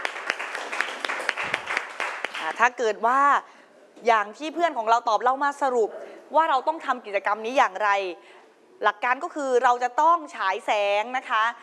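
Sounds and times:
audience applause for a student group: 0.0s - 2.4s
speech: 2.5s - 11.6s.

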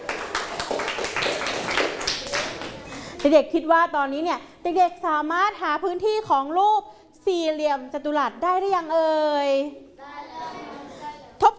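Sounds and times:
children clapping in a room: 0.0s - 3.3s
speech: 3.2s - 10.2s.

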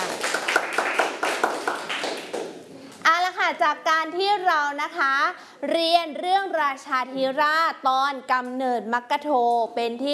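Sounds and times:
children clapping in a classroom: 0.0s - 2.7s
speech: 3.5s - 10.1s.

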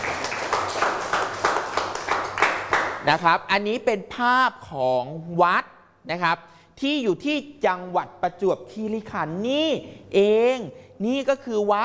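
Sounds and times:
classroom applause for a student: 0.0s - 3.0s
speech: 3.1s - 11.8s.

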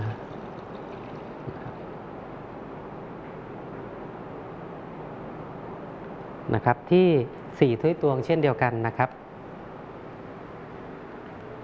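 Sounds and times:
milk pouring into a mixture: 0.0s - 1.7s
speech: 6.5s - 9.2s.

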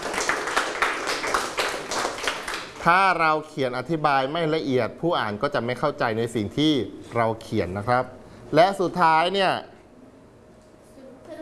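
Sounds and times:
classroom of students clapping for a classmate: 0.0s - 2.9s
speech: 2.8s - 9.7s.

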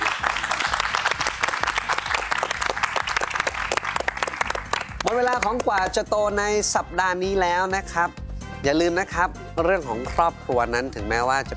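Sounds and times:
audience applause: 0.0s - 5.8s
speech: 5.1s - 11.5s.

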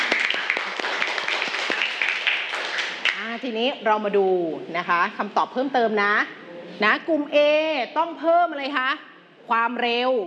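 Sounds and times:
classroom clapping for classmates: 0.0s - 3.4s
speech: 3.4s - 10.2s.

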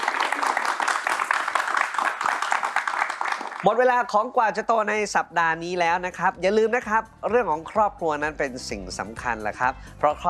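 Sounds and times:
audience applause for three guests: 0.0s - 3.8s
speech: 3.6s - 10.2s.

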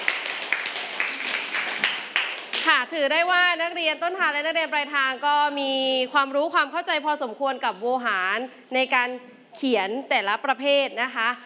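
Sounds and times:
students in a classroom clapping for a winning group: 0.0s - 2.8s
speech: 2.6s - 11.4s.

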